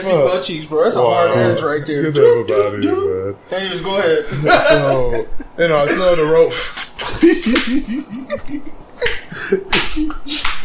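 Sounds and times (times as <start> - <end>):
speech: 0.0 - 10.6
laughter: 4.2 - 10.6
hand slapping: 7.4 - 7.8, 9.7 - 10.6.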